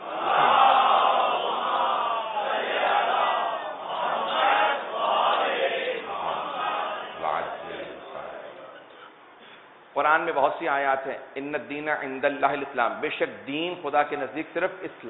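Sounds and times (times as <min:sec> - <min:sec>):
crowd chanting salawat in unison: 0:00.0 - 0:08.9
speech: 0:10.2 - 0:15.0.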